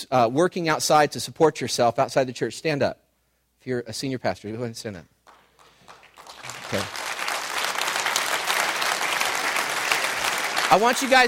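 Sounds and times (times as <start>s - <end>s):
speech: 0.0s - 3.0s, 3.6s - 5.1s, 6.7s - 7.0s, 10.7s - 11.2s
audience clapping: 5.2s - 11.2s.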